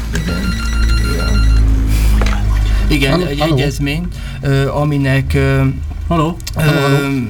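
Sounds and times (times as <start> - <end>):
telephone ringing: 0.2 - 1.8
speech: 3.0 - 7.2.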